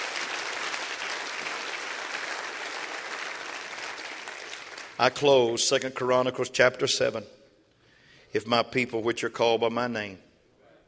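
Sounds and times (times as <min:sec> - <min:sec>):
audience clapping hands: 0:00.0 - 0:05.3
speech: 0:05.0 - 0:07.4, 0:08.3 - 0:10.3.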